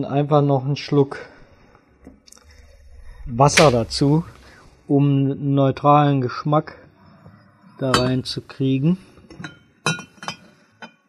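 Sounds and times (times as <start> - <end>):
speech: 0.0 - 1.3, 3.3 - 6.8, 7.8 - 9.6
glass vinegar bottle clinking: 7.9 - 8.3, 9.3 - 11.0.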